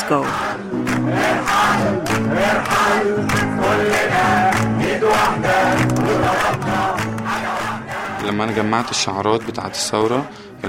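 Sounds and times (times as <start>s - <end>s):
protest crowd chanting in unison: 0.0s - 10.6s
lead singer singing: 1.3s - 8.2s.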